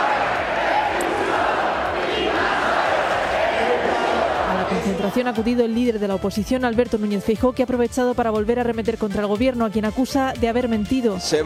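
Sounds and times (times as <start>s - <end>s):
protest crowd shouting chants: 0.0s - 5.8s
speech: 5.1s - 11.4s.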